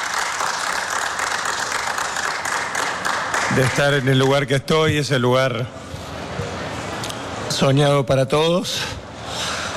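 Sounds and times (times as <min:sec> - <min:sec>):
applause in a press conference room: 0:00.0 - 0:04.7
speech: 0:03.5 - 0:05.8, 0:07.6 - 0:09.6.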